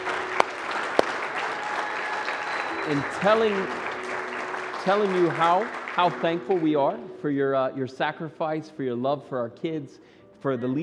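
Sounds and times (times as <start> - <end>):
round of applause: 0.0 - 7.0
speech: 2.9 - 3.8, 4.8 - 10.8.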